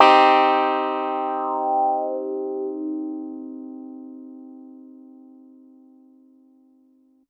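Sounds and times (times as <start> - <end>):
hard piano and clavinet in a minor key: 0.0 - 5.2.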